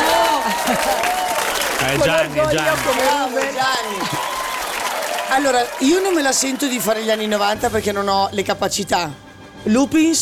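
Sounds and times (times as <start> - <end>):
applause: 0.0 - 7.6
speech: 1.8 - 4.4, 5.3 - 10.2.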